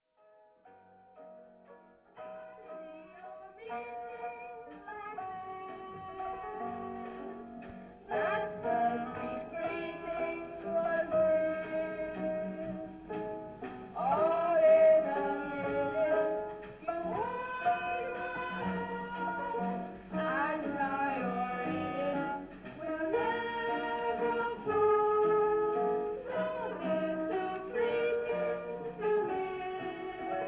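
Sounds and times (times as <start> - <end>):
waltz music: 0.7 - 30.4.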